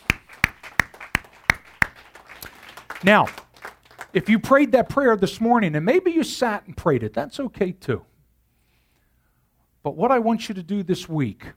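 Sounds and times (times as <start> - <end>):
standing church congregation clapping for the Lord: 0.0 - 4.3
speech: 3.0 - 3.4, 4.1 - 8.1, 9.8 - 11.5.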